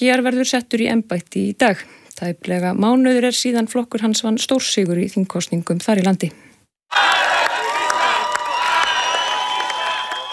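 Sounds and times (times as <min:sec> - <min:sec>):
speech: 0:00.0 - 0:07.4
crowd cheering Hungarian prime minister Péter Magyar at the Hungarian parliament: 0:06.9 - 0:10.3
high shouts and whoops: 0:06.9 - 0:10.3
steady clapping: 0:06.9 - 0:10.3.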